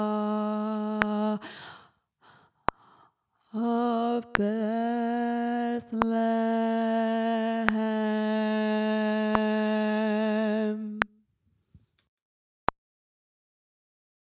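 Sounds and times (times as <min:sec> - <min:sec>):
alto voice singing: 0:00.0 - 0:01.8, 0:03.5 - 0:11.2
gospel choir singing: 0:03.6 - 0:11.0.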